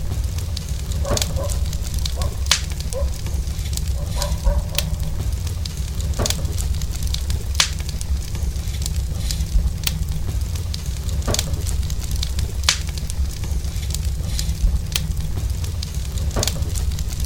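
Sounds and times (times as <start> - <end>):
campfire crackling: 0.0 - 17.2
wolf howling: 1.0 - 3.3, 3.9 - 5.2.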